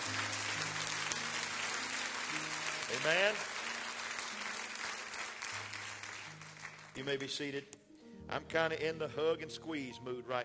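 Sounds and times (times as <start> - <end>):
audience clapping hands: 0.0 - 7.6
speech: 2.9 - 3.5, 7.0 - 10.4.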